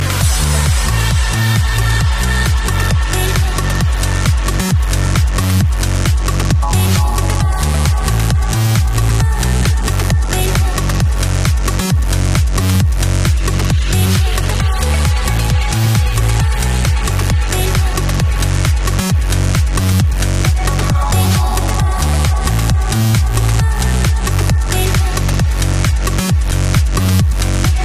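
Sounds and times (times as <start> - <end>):
trance music: 0.0 - 27.8.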